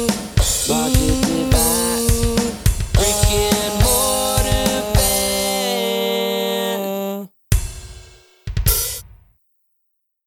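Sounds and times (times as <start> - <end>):
low vocal harmony: 0.0 - 7.3.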